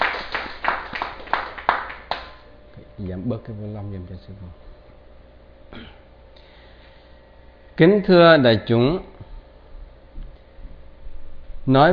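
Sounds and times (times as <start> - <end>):
scattered hand claps at a Buddhist dharma talk: 0.0 - 2.5
speech: 3.0 - 4.7, 5.7 - 6.0, 7.8 - 9.1, 11.7 - 11.9.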